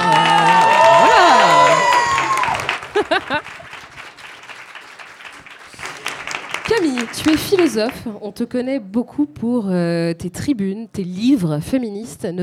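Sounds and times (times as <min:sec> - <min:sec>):
audience applause: 0:00.0 - 0:08.0
laughter: 0:02.7 - 0:03.7
speech: 0:07.2 - 0:12.4.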